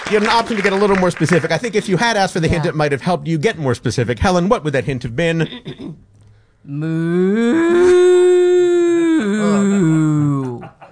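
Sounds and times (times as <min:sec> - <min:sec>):
speech: 0:00.1 - 0:08.2
person imitating a cow mooing: 0:06.7 - 0:10.8.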